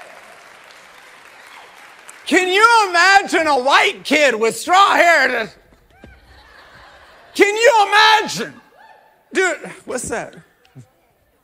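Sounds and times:
audience clapping hands: 0.0 - 3.8
speech: 2.3 - 5.6, 7.4 - 8.6, 9.3 - 10.9
laughter: 6.0 - 7.7.

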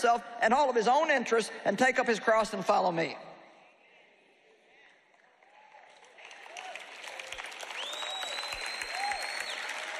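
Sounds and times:
speech: 0.0 - 3.3
audience clapping: 5.1 - 9.9.

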